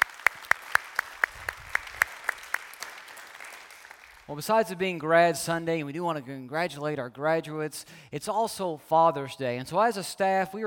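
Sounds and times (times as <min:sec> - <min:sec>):
sparse audience clapping at a Grad Sunday gathering: 0:00.0 - 0:04.3
speech: 0:04.3 - 0:10.6.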